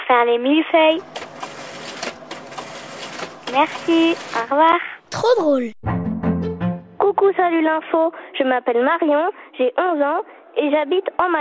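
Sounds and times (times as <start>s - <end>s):
speech: 0.1s - 1.2s, 3.5s - 5.8s, 7.2s - 11.3s
photocopier printing: 0.9s - 4.8s.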